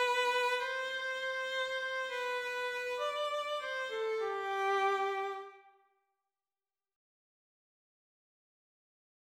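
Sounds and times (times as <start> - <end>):
violin jingle: 0.0 - 5.6.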